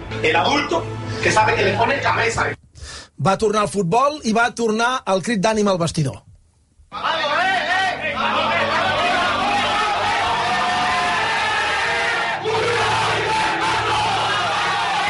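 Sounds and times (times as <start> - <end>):
speech: 0.2 - 2.6, 3.2 - 6.3, 6.9 - 7.2
team and fans chanting together: 7.0 - 15.0.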